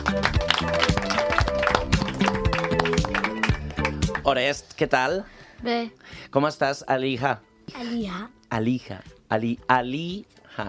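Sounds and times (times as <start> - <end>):
welcoming applause: 0.0 - 4.4
speech: 4.2 - 10.6.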